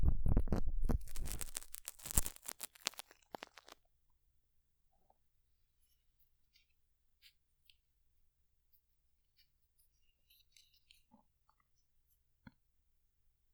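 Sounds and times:
ear cleaning scratching: 0.0s - 3.8s.

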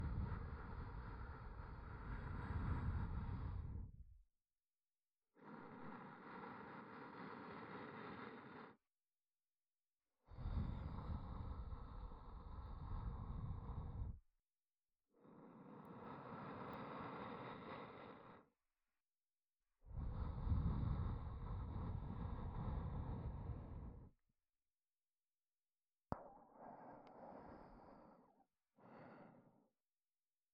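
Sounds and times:
ASMR breathy sighs: 0.0s - 4.1s, 5.3s - 8.9s, 10.2s - 14.2s, 15.1s - 18.6s, 19.9s - 24.2s, 26.6s - 29.8s.

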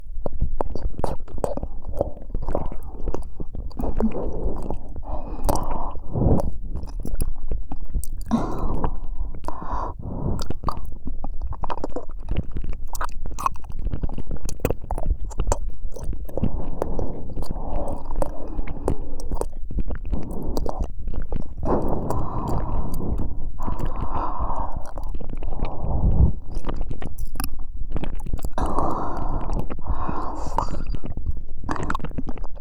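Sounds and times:
deep ear licking in the right ear: 0.1s - 32.5s.

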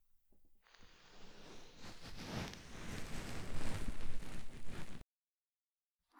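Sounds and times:
ASMR ear cleaning of the left ear: 1.1s - 5.0s.

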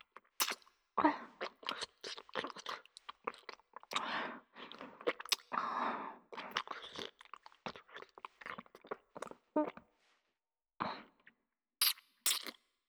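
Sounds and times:
ear licking: 0.2s - 0.6s, 1.4s - 5.6s, 6.3s - 9.8s, 11.8s - 12.6s.

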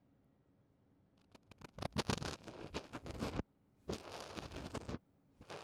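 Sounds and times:
ear cleaning of a child, right ear: 1.5s - 5.6s.

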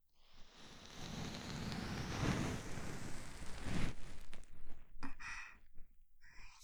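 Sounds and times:
ASMR ear cleaning of the left ear: 0.3s - 6.5s.

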